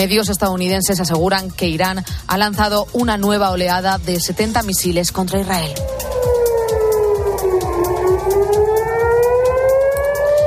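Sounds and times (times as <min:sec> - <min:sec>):
speech: 0:00.0 - 0:06.3
air raid sirens in southern Israel, Jerusalem and Tel Aviv: 0:05.7 - 0:10.4.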